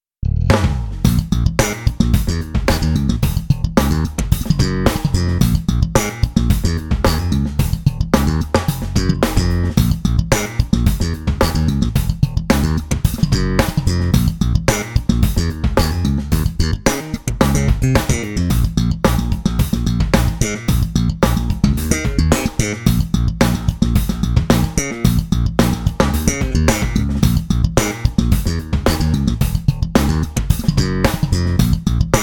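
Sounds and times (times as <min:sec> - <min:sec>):
slapped bass: 0:00.1 - 0:32.2.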